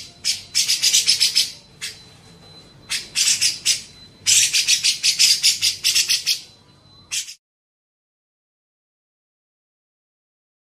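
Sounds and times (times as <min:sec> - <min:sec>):
Grey-cheeked bulbul chattering: 0:00.0 - 0:02.1, 0:02.9 - 0:07.4.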